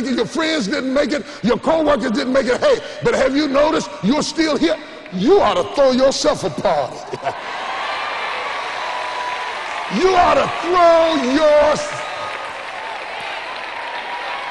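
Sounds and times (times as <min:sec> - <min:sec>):
speech: 0:00.0 - 0:07.5, 0:09.9 - 0:12.0
audience clapping and calling out: 0:07.2 - 0:14.4.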